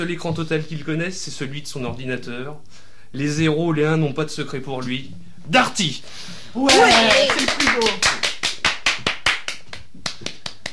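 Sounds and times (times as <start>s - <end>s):
speech: 0.0s - 8.2s
single person clapping: 6.7s - 10.7s.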